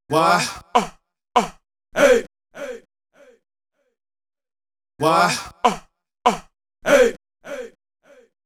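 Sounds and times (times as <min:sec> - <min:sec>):
vocal accents: 0:00.1 - 0:02.8, 0:05.0 - 0:08.3.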